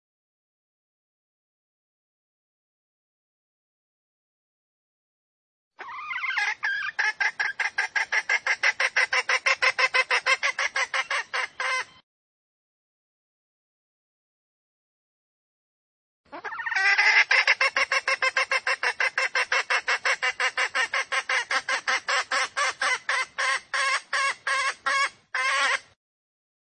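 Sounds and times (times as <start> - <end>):
junglefowl hen clucking: 5.8 - 12.0, 16.3 - 26.0.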